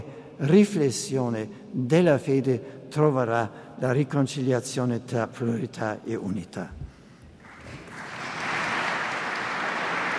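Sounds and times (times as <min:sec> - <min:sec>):
speech: 0:00.4 - 0:06.8
crowd applause: 0:07.4 - 0:10.1.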